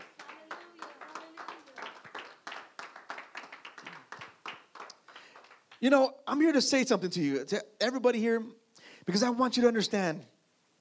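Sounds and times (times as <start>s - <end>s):
audience applause: 0.0s - 5.8s
speech: 5.8s - 10.3s.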